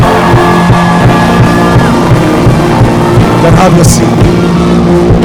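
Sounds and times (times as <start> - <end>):
audience clapping: 0.0 - 3.8
audience shouting: 0.0 - 5.1
speech: 3.6 - 5.1.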